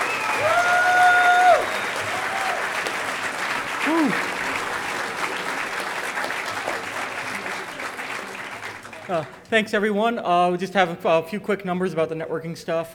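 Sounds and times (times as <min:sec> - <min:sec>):
audience whistles and hoots: 0:00.0 - 0:02.2
audience applause: 0:00.0 - 0:09.5
speech: 0:09.1 - 0:12.9.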